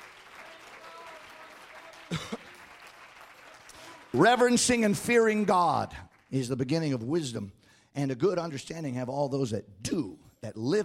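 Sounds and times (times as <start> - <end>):
audience clapping hands: 0.0 - 7.1
speech: 4.1 - 10.8.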